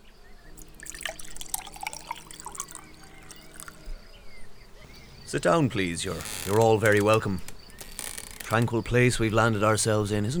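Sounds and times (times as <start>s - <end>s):
stirring a jug of sangria: 0.6s - 3.8s, 4.9s - 8.9s
speech: 5.3s - 7.5s, 8.5s - 10.3s.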